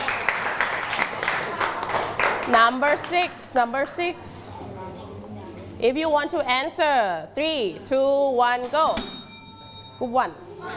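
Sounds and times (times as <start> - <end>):
classroom clapping for a group: 0.0 - 4.0
speech: 2.5 - 4.4, 5.8 - 9.2, 10.0 - 10.7.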